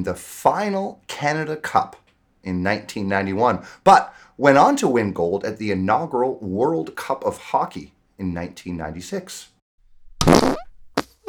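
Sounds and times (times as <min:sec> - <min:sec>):
speech: 0:00.0 - 0:09.5
fart sound used as quiz buzzer: 0:10.2 - 0:11.2.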